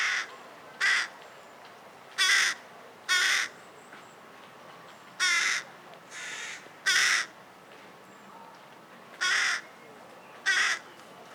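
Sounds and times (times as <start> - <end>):
carrion crow cawing, Corvus corone: 2.2 - 3.5, 5.2 - 7.3, 9.2 - 9.6, 10.5 - 10.8.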